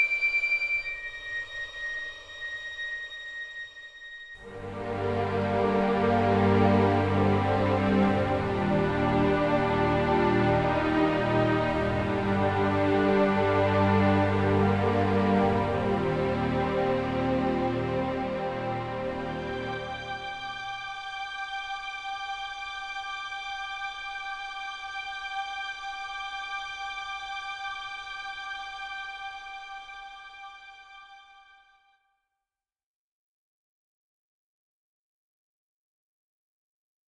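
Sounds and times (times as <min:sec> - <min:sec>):
ambient string music: 0:00.2 - 0:31.9.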